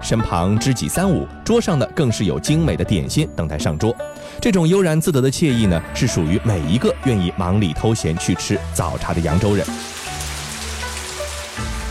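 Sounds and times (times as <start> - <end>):
speech: 0.1 - 10.0
steady light rain pattering on a surface: 8.8 - 11.8.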